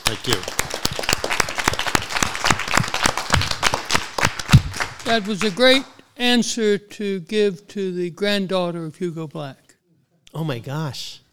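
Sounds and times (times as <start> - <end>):
audience applause at a Cumberland School of Law event at Samford University: 0.0 - 6.0
speech: 0.1 - 0.7, 5.0 - 9.6, 10.3 - 11.2.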